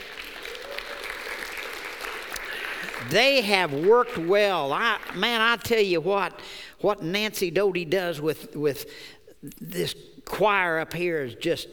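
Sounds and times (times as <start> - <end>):
audience applause: 0.0 - 4.0
speech: 3.0 - 11.7.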